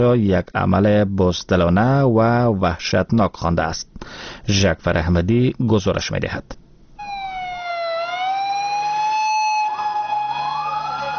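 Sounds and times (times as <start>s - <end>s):
speech: 0.0s - 6.6s
ambulance siren: 7.0s - 11.1s.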